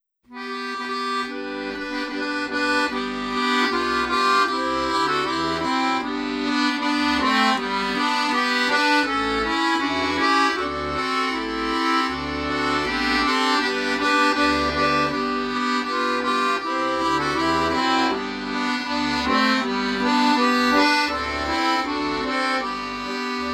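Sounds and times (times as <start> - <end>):
music: 0.3 - 23.5.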